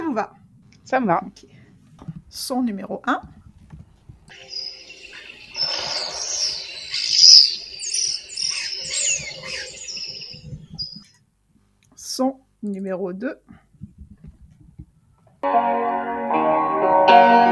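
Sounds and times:
birdsong in nature: 0.0s - 11.2s
speech: 0.2s - 1.6s, 2.3s - 3.4s, 4.3s - 4.6s, 12.2s - 13.6s, 15.4s - 17.4s.

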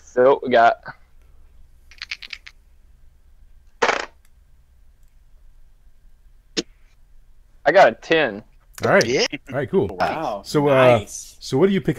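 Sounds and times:
speech: 0.2s - 1.0s, 7.7s - 11.9s
two six-sided dice rolled for a strength check in a tabletop role-playing game: 1.9s - 2.6s.

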